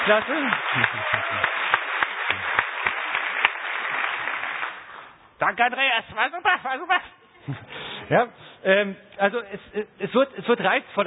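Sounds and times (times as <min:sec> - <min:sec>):
speech: 0:00.0 - 0:02.7, 0:05.4 - 0:11.0
audience applause: 0:00.0 - 0:05.0
laughter: 0:00.8 - 0:01.5.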